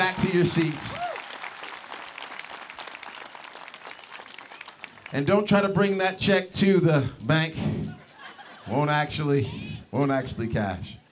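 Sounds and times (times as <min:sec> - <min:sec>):
audience applause: 0:00.0 - 0:05.1
speech: 0:00.3 - 0:01.0, 0:05.1 - 0:07.8, 0:08.7 - 0:11.0
laughter: 0:07.6 - 0:09.8.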